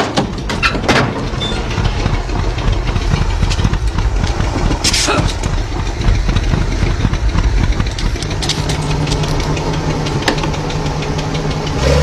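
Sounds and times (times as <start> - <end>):
car engine running after repair: 0.0 - 12.0.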